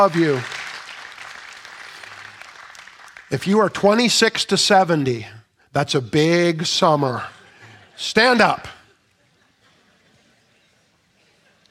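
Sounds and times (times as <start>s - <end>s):
speech: 0.0s - 0.6s, 3.3s - 7.4s, 8.0s - 8.8s
crowd applause: 0.0s - 3.4s.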